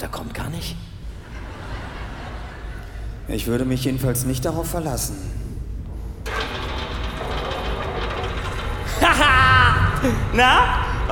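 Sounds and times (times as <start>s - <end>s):
speech: 0.0s - 1.0s, 3.3s - 5.4s, 10.0s - 11.1s
laughter: 1.2s - 3.2s
hydraulic machinery: 6.2s - 11.1s.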